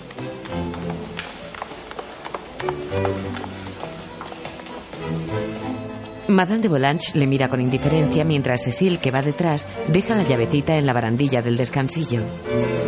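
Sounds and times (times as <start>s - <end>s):
footsteps of two women descending a stone staircase: 0.0s - 6.3s
speech: 2.6s - 3.6s, 6.4s - 12.8s.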